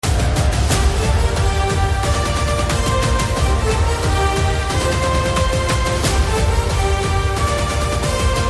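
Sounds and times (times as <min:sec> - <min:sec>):
trailer background music ringtone: 0:00.0 - 0:08.4.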